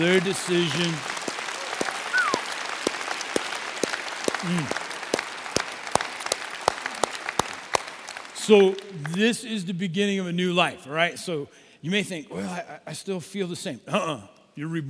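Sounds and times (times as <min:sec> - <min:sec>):
speech: 0:00.0 - 0:01.1, 0:04.4 - 0:04.8, 0:08.5 - 0:14.8
audience applause: 0:00.0 - 0:09.2.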